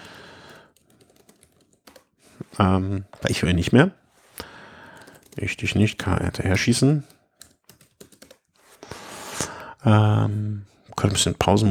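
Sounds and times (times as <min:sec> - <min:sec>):
typing on a computer keyboard: 0:00.0 - 0:02.1, 0:04.9 - 0:05.6, 0:06.3 - 0:08.5
speech: 0:02.6 - 0:04.0, 0:05.4 - 0:07.2, 0:09.9 - 0:11.7.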